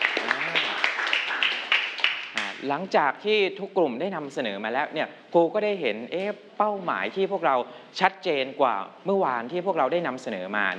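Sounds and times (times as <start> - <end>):
audience applause for a group: 0.0 - 2.5
speech: 2.6 - 10.7.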